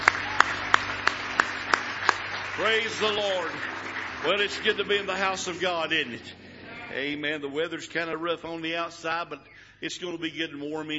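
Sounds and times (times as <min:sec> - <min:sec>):
church congregation clapping: 0:00.0 - 0:07.1
speech: 0:02.6 - 0:10.9.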